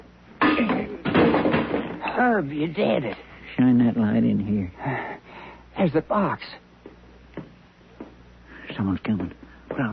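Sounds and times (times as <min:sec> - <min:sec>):
door struck and knocked loose, banging and splintering: 0:00.7 - 0:02.1
speech: 0:02.2 - 0:05.2, 0:05.8 - 0:06.6, 0:08.8 - 0:09.9.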